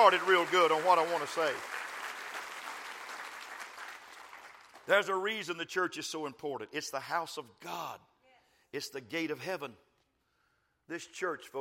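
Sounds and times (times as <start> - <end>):
speech: 0.0 - 1.8, 4.9 - 8.1, 8.7 - 9.9, 10.9 - 11.5
audience clapping hands: 0.0 - 5.1.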